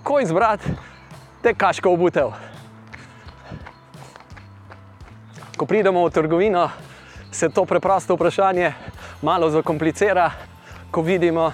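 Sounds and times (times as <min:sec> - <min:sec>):
speech: 0:00.1 - 0:02.5, 0:05.6 - 0:11.5
footsteps of people running on a 5 km run: 0:02.9 - 0:05.7.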